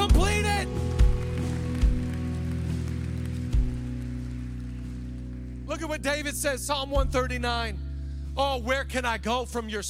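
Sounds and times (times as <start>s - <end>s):
audience clapping: 0.0s - 6.4s
speech: 5.8s - 7.8s, 8.4s - 9.8s.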